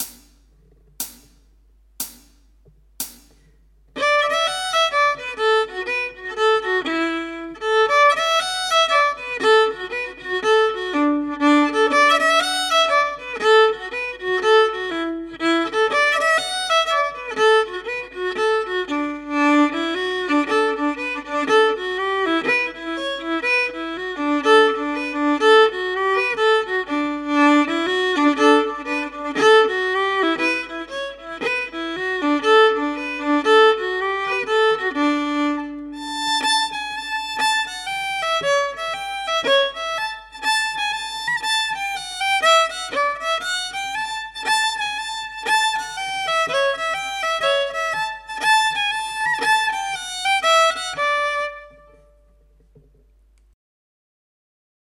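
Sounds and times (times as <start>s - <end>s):
solo fiddle: 4.0s - 52.4s.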